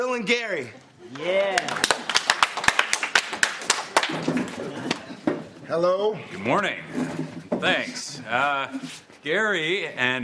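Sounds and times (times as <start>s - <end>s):
speech: 0.2s - 2.1s, 5.7s - 10.2s
audience clapping: 1.1s - 5.1s.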